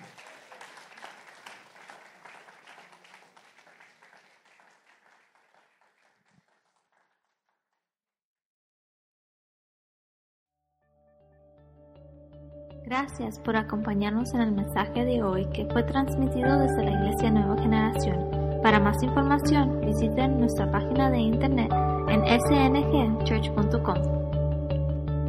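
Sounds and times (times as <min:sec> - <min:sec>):
audience applause: 0:00.0 - 0:07.2
speech: 0:12.9 - 0:24.3.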